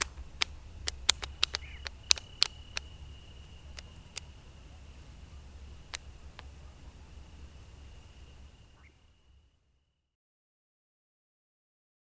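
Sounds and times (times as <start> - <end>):
European nightjar calls: 0.0 - 9.3.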